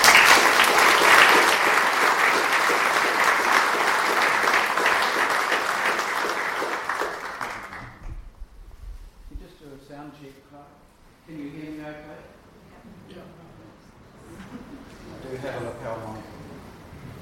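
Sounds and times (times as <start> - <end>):
audience applause welcoming a speaker to an evening talk: 0.0 - 8.1.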